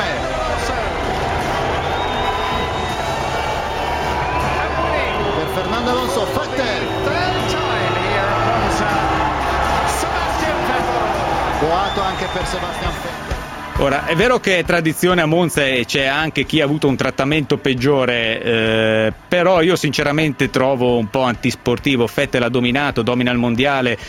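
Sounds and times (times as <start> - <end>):
crowd whistling in disapproval at racetrack: 0.0 - 15.7
speech: 12.0 - 13.1, 13.8 - 24.0.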